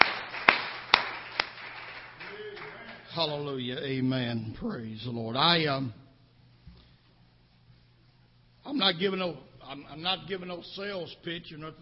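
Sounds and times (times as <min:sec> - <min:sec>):
audience clapping hands in praise: 0:00.0 - 0:03.4
speech: 0:03.2 - 0:06.0, 0:08.8 - 0:11.8.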